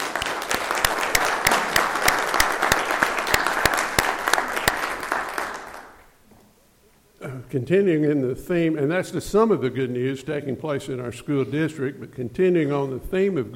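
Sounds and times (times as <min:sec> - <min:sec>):
applause: 0:00.0 - 0:06.0
speech: 0:07.5 - 0:13.5.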